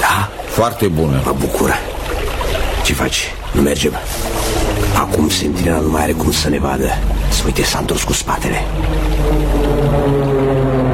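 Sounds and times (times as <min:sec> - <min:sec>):
speech: 0:00.6 - 0:01.9, 0:02.8 - 0:04.4, 0:05.0 - 0:10.9
Mosca fighter planes flying overhead: 0:04.0 - 0:10.9.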